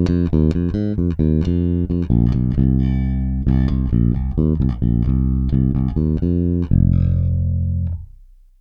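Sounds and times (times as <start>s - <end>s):
bass guitar through passive bridge pickup: 0.0s - 8.5s.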